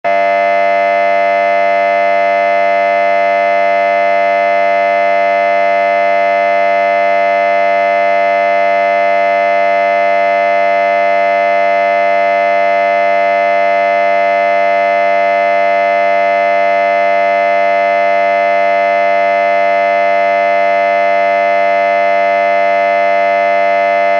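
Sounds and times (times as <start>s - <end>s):
theatre or hall opening buzzer with reverb: 0.0s - 24.1s.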